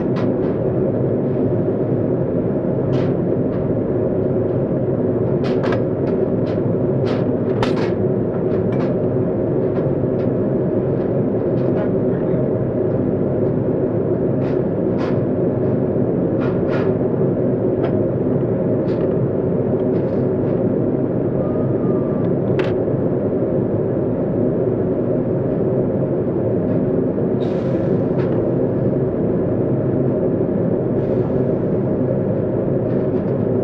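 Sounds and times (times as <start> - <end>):
ambient air noise: 0.0 - 33.6.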